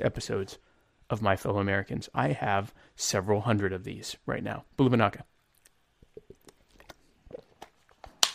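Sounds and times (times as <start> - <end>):
speech: 0.0 - 5.3
person sipping water: 5.4 - 8.2
swallowing gulps: 5.5 - 8.2.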